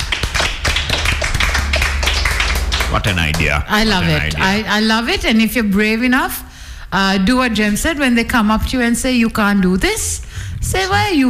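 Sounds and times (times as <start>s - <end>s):
round of applause: 0.0s - 3.5s
speech: 2.9s - 11.2s.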